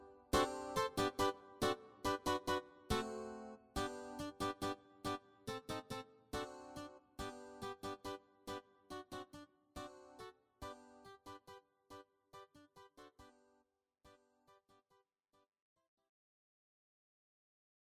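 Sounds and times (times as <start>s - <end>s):
kwela guitars: 0.0s - 11.6s.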